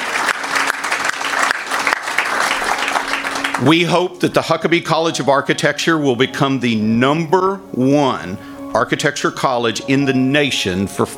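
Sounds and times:
crowd applause: 0.0s - 4.6s
speech: 3.6s - 11.1s.

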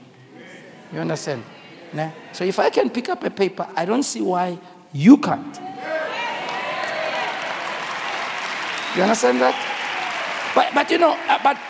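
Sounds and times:
speech: 0.9s - 5.9s, 9.0s - 9.7s, 10.6s - 11.6s
audience clapping: 6.3s - 11.6s.

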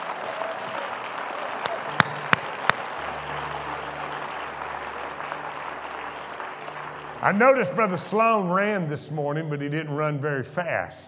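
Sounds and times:
audience clapping hands: 0.0s - 8.8s
speech: 7.2s - 11.0s.

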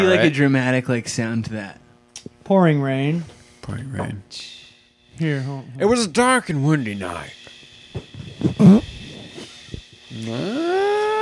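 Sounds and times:
speech: 0.0s - 1.8s, 2.5s - 4.6s, 5.2s - 8.9s, 10.2s - 10.9s
fart blown onto a microphone: 8.3s - 9.5s.

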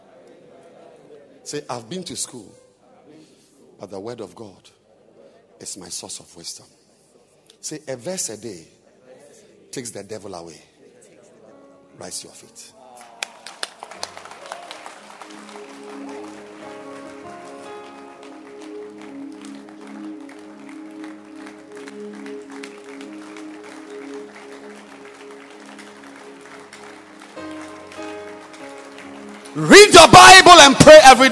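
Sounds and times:
speech: 1.5s - 2.6s, 3.8s - 4.8s, 5.6s - 6.8s, 7.6s - 8.8s, 9.7s - 10.7s, 12.0s - 12.8s, 29.6s - 31.3s
audience clapping: 12.9s - 31.3s
sustained musical tones: 15.0s - 30.1s.

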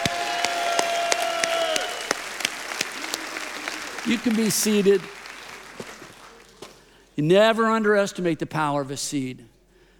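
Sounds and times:
audience cheering: 0.0s - 6.6s
speech: 4.0s - 5.2s, 7.2s - 9.5s.

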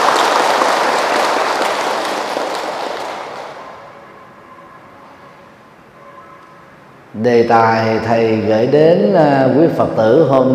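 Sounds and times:
crowd applause: 0.0s - 4.1s
speech: 7.2s - 10.5s.

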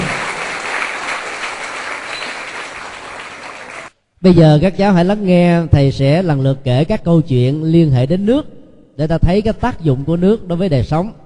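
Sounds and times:
children's round of applause: 0.0s - 4.0s
speech: 4.2s - 11.2s.

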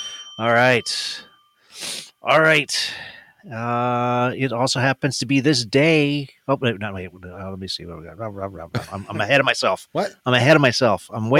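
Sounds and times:
sleigh bells jingling: 0.0s - 2.6s
speech: 0.4s - 1.3s, 2.2s - 11.3s.

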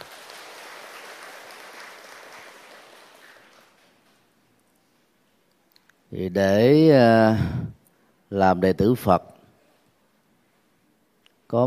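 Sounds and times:
large crowd applauding: 0.0s - 4.3s
speech: 6.1s - 7.6s, 8.3s - 9.3s.

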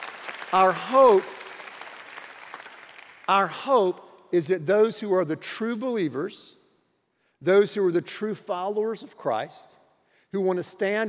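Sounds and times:
audience applause: 0.0s - 3.3s
speech: 0.5s - 1.4s, 3.3s - 6.6s, 7.4s - 9.7s, 10.3s - 11.0s.

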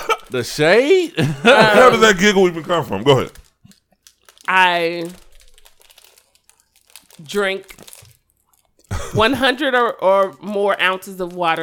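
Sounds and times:
speech: 0.3s - 3.4s, 4.5s - 5.2s, 7.2s - 7.9s, 8.9s - 11.6s
laughter: 1.2s - 2.5s
plastic cookie package crinkling as it's torn open: 2.0s - 8.9s, 9.5s - 11.6s.

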